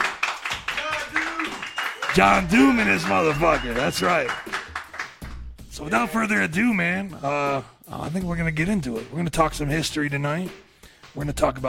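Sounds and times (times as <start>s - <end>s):
people cheering: 0.0s - 5.1s
crowd applauding: 0.0s - 5.3s
speech: 2.2s - 4.5s, 5.8s - 11.6s.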